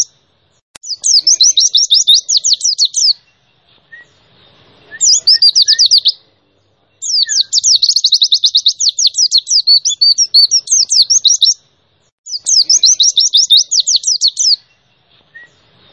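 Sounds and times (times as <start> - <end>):
white-eye song of very high rapid chirped notes: 0.8 - 4.2, 4.9 - 6.2, 7.0 - 11.6, 12.3 - 15.7.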